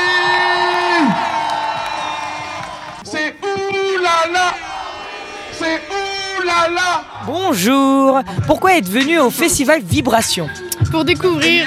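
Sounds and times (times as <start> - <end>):
person whooping: 0.0 - 2.4
festival audience at an urban culture event cheering: 0.0 - 8.0
speech: 7.5 - 11.6.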